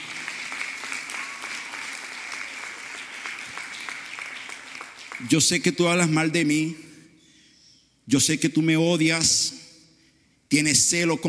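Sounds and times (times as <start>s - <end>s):
audience applause: 0.0s - 5.5s
speech: 5.2s - 6.8s, 8.1s - 9.6s, 10.5s - 11.2s.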